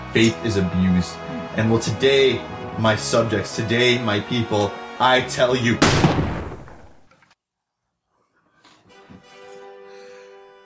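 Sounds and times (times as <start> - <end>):
speech: 0.1 - 6.3
sniper rifle shot: 5.8 - 7.1.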